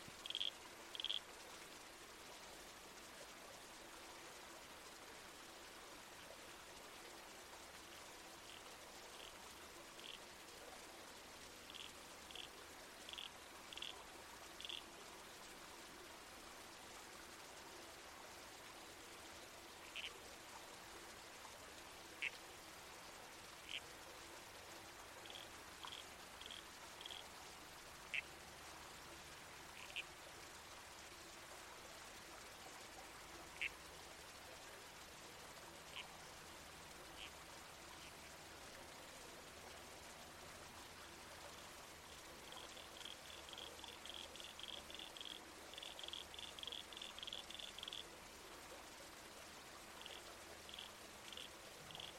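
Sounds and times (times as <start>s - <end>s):
creek water flowing: 0.0s - 52.1s
red-crowned toadlet calls: 0.2s - 1.2s, 10.0s - 10.2s, 11.7s - 14.0s, 14.6s - 14.8s, 19.8s - 20.1s, 23.6s - 23.8s, 25.2s - 27.2s, 29.7s - 30.0s, 42.5s - 48.1s, 50.0s - 52.1s.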